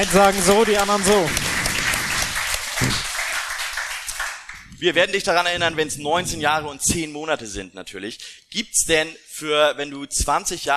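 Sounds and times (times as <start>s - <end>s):
speech: 0.0s - 1.5s, 2.8s - 3.1s, 4.8s - 10.7s
crowd applauding: 0.0s - 4.8s.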